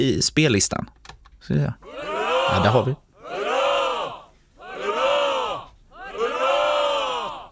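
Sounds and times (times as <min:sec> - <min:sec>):
speech: 0:00.0 - 0:03.0
group of voices cheering hurrah for a 60th birthday: 0:01.8 - 0:07.5.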